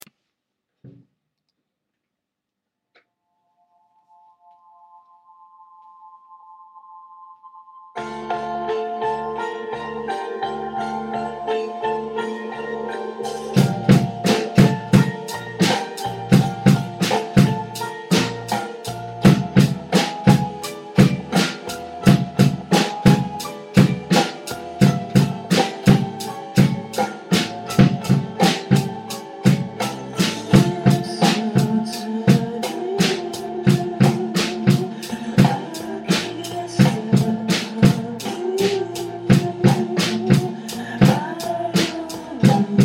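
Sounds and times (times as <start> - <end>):
drum solo: 13.3 - 42.8.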